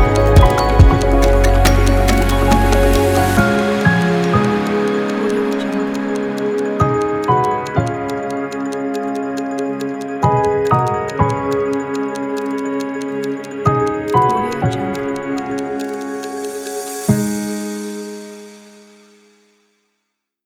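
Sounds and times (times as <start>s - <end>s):
documentary technology soundscape: 0.0s - 17.8s.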